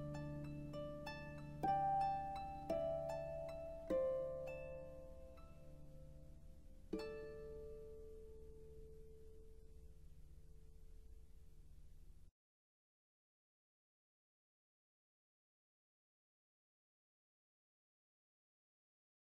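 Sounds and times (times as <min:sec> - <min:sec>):
instrumental harp praise music: 0:00.0 - 0:09.9.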